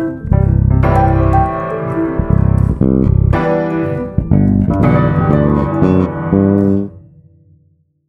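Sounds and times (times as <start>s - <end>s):
A minor bass chord progression: 0.0s - 7.1s.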